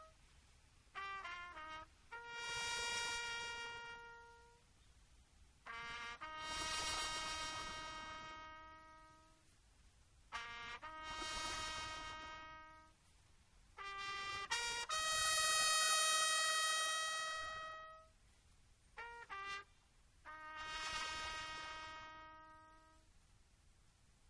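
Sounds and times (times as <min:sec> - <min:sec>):
city bugle call: 0:00.9 - 0:04.6, 0:05.6 - 0:09.4, 0:10.3 - 0:13.0, 0:13.8 - 0:18.2, 0:19.0 - 0:23.1.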